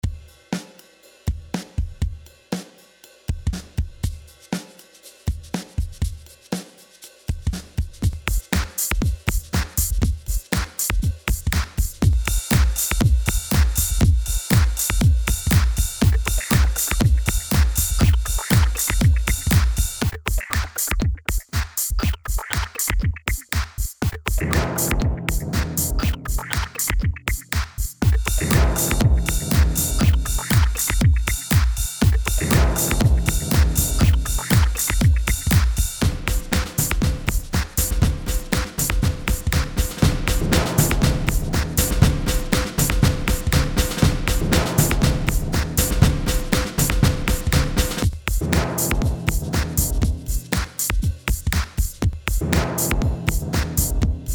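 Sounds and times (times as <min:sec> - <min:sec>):
percussion: 0:00.0 - 0:54.3.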